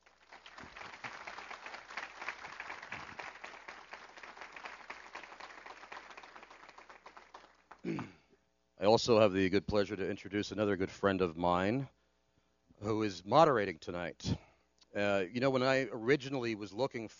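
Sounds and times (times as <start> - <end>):
audience applause welcoming the Catholic debater at a debate: 0.0 - 8.0
speech: 7.9 - 8.2, 8.8 - 12.0, 12.8 - 14.4, 15.0 - 17.1.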